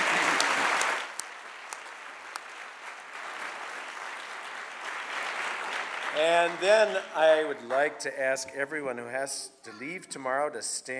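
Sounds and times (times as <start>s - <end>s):
audience applause: 0.0s - 8.0s
speech: 6.2s - 10.9s.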